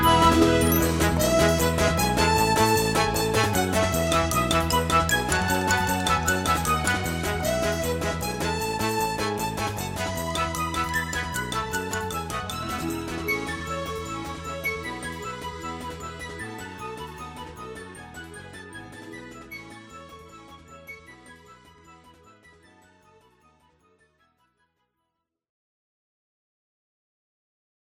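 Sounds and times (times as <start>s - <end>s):
orchestral arrangement: 0.0s - 16.6s.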